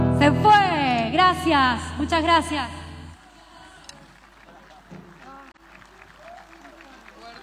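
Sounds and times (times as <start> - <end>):
speech: 0.2 - 2.8
audience applause: 3.2 - 7.4.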